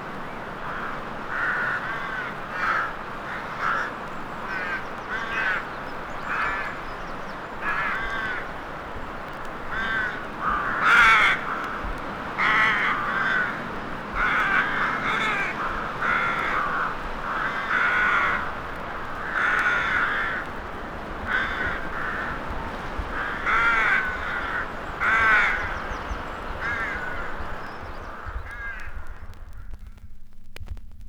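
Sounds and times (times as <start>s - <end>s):
crows cawing in a graveyard: 0.1s - 29.8s
vinyl crackle: 28.4s - 31.0s.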